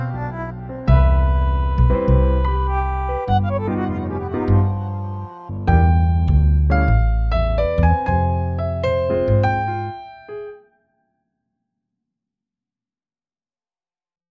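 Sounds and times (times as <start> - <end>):
swing music: 0.0 - 10.0.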